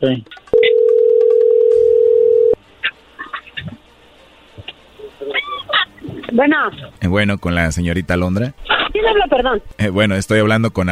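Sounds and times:
speech: 0.0s - 0.4s, 6.3s - 10.9s
telephone ringback tone from an outgoing call: 0.5s - 2.6s.

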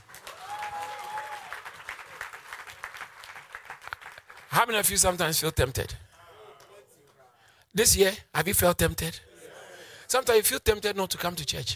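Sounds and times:
audience clapping: 0.0s - 5.1s
speech: 4.6s - 6.1s, 7.8s - 9.3s, 10.1s - 11.7s.

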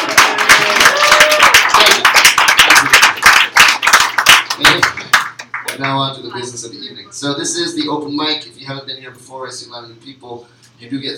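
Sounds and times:
applause: 0.0s - 6.1s
speech: 5.9s - 11.1s.

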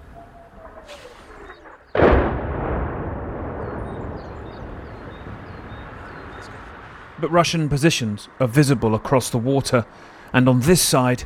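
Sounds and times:
artillery fire and explosions: 0.0s - 7.2s
speech: 7.2s - 11.2s.

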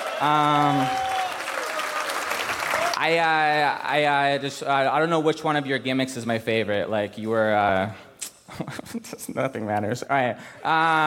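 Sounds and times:
voices whooping and cheering: 0.0s - 3.0s
audience applause: 0.0s - 3.2s
speech: 0.2s - 1.1s, 3.0s - 11.0s.

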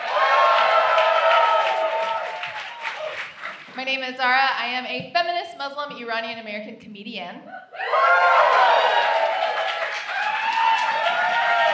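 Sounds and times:
crowd applause and cheering: 0.0s - 3.8s, 7.8s - 11.7s
speech: 3.9s - 9.3s.

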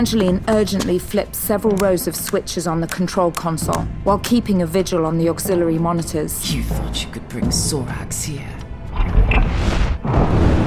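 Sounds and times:
speech: 0.0s - 8.6s, 9.3s - 10.4s
colossal fiery explosion roaring: 9.4s - 10.6s.

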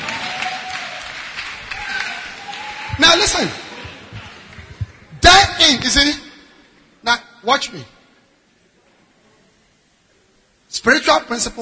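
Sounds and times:
people clapping hands: 0.0s - 5.9s
speech: 3.2s - 3.6s, 5.6s - 6.2s, 7.1s - 8.0s, 10.8s - 11.6s.

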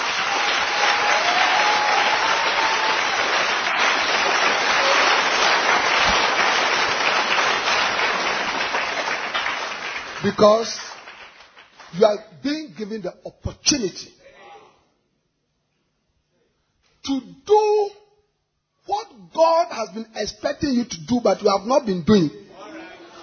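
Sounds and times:
audience clapping hands: 0.0s - 12.0s
speech: 10.3s - 10.9s, 11.9s - 14.2s, 17.0s - 18.0s, 18.9s - 22.4s.

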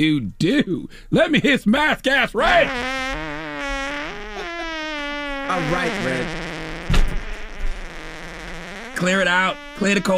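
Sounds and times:
speech: 0.0s - 3.3s, 5.5s - 6.5s, 9.0s - 10.1s
recorded fart: 2.4s - 10.1s.

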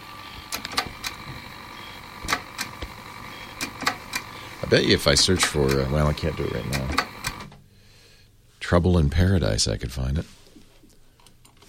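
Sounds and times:
steady high electronic whine: 0.0s - 7.5s
damaged Zip disk clicking in a Zip drive: 0.3s - 7.5s
speech: 4.7s - 7.1s, 8.7s - 10.4s.

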